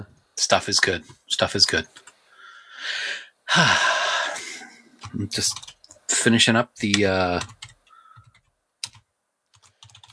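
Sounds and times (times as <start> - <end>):
speech: 0.0 - 2.1, 2.8 - 4.0, 5.1 - 7.6
typing on a computer keyboard: 5.0 - 6.0, 6.8 - 10.1.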